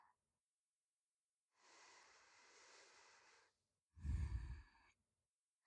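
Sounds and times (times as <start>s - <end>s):
person breathing in sleep in the left channel: 4.0s - 4.6s.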